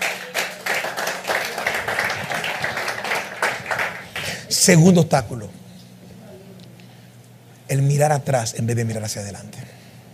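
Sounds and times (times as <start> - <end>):
audience applauding: 0.0 - 4.5
speech: 4.6 - 5.6, 7.7 - 9.8.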